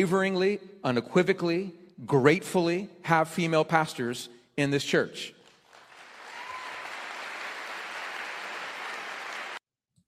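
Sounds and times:
speech: 0.0s - 5.4s
church audience clapping in an ovation: 5.4s - 9.6s.

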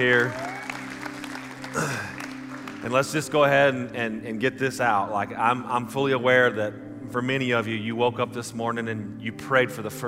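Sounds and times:
speech: 0.0s - 0.4s, 2.8s - 10.0s
audience applause for first time guests: 0.0s - 3.2s.

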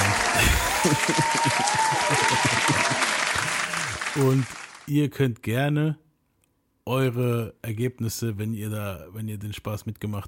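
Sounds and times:
laughter: 0.0s - 4.5s
applause sound effect: 0.0s - 4.9s
speech: 4.2s - 6.0s, 6.9s - 10.2s.

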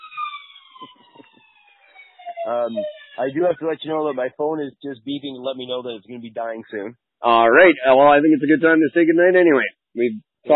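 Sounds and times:
fire engine siren passing: 0.0s - 4.0s
speech: 2.5s - 10.5s.

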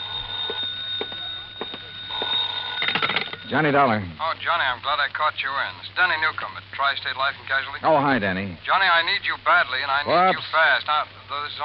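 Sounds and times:
telephone ringing: 0.0s - 4.0s
speech: 3.5s - 11.6s.

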